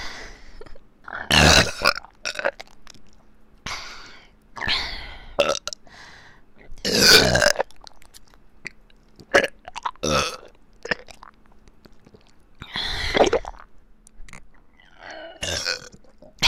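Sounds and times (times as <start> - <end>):
burping in both ears: 1.1 - 2.7, 5.4 - 5.8, 6.8 - 7.9, 8.7 - 11.3, 14.3 - 16.4.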